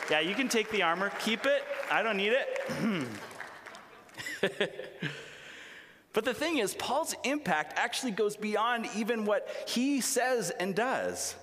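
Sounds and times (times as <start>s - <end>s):
audience applause: 0.0s - 4.4s
speech: 0.1s - 3.3s, 4.4s - 5.3s, 6.1s - 11.4s
laughter: 2.6s - 5.4s.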